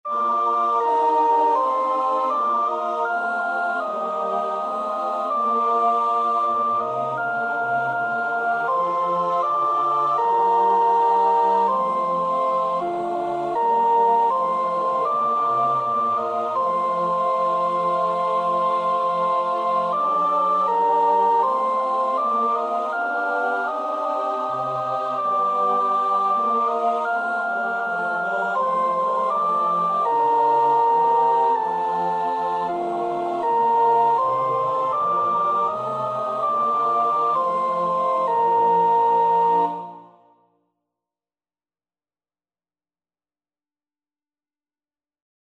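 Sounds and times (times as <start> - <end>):
soprano singing: 0.1 - 40.2.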